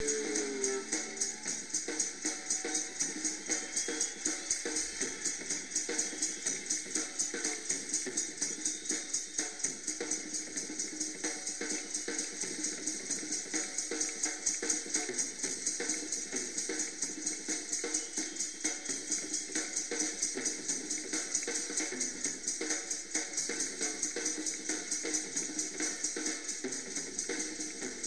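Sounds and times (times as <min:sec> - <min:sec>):
drum kit: 0:00.0 - 0:28.0.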